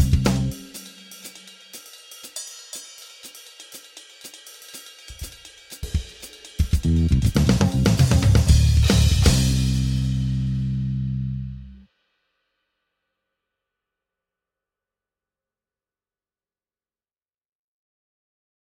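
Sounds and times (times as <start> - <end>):
backing music: 0.0 - 1.8, 4.3 - 11.8.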